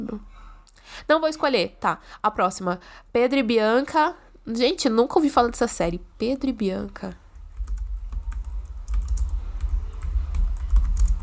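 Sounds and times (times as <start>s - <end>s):
speech: 0.1s - 7.2s
typing on a computer keyboard: 7.4s - 11.2s.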